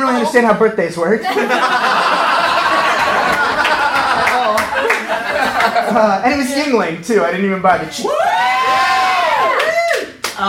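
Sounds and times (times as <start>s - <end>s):
speech: 0.0s - 2.4s, 5.6s - 8.2s
laughter: 1.2s - 6.5s
audience cheering: 1.5s - 5.8s, 8.0s - 10.4s
audience applause: 1.9s - 5.8s.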